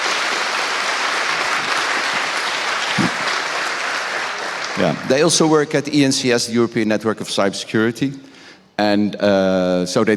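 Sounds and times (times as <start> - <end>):
audience applause: 0.0 - 5.5
speech: 4.8 - 10.1.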